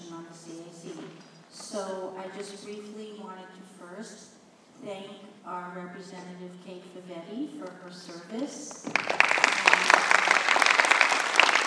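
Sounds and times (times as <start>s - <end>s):
speech: 1.8s - 9.3s
people applauding: 8.8s - 11.6s.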